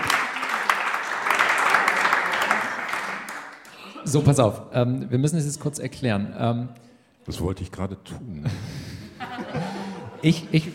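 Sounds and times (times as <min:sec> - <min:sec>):
audience applause: 0:00.0 - 0:03.9
speech: 0:04.1 - 0:08.7, 0:09.4 - 0:10.7
laughter: 0:08.4 - 0:10.7.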